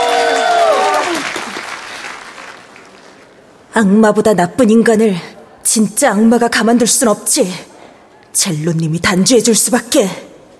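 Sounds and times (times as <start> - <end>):
audience clapping: 0.0 - 3.4
speech: 3.8 - 10.3.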